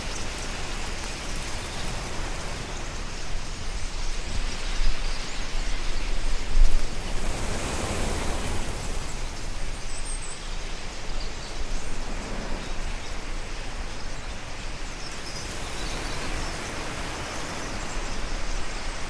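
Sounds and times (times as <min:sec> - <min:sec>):
flock of 10000 starlings: 0:00.0 - 0:19.0.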